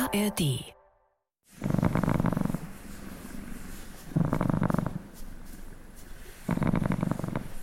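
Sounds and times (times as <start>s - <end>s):
speech: 0.1s - 0.7s
cat purring: 1.6s - 2.7s, 4.0s - 5.2s, 6.3s - 7.6s.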